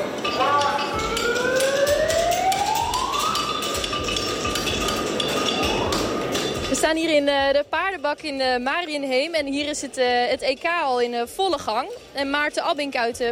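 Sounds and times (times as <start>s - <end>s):
hammers striking horseshoes on anvils: 0.2s - 6.9s
ringing tone sliding upward: 0.4s - 6.3s
speech: 6.9s - 13.3s.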